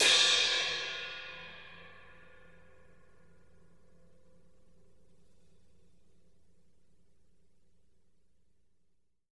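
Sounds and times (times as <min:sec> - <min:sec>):
ride cymbal: 0:00.0 - 0:02.0.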